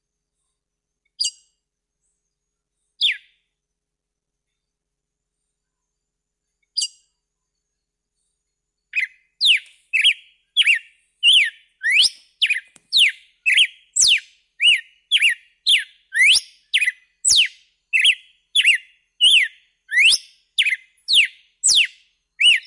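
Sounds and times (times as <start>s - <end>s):
red-cowled cardinal whistled song: 3.0s - 3.4s, 8.9s - 22.6s.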